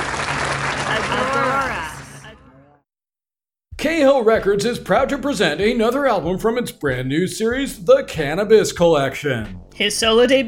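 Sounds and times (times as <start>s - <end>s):
audience applause: 0.0s - 2.4s
speech: 3.8s - 10.4s.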